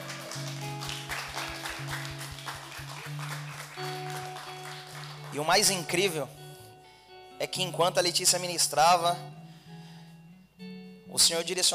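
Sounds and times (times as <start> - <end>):
audience applause: 0.0 - 5.7
speech: 5.4 - 6.4, 7.4 - 9.4, 11.2 - 11.7.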